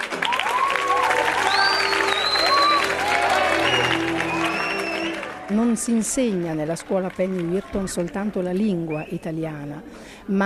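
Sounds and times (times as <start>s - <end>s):
spontaneous audience applause in cinema: 0.0s - 9.0s
speech: 5.7s - 10.4s.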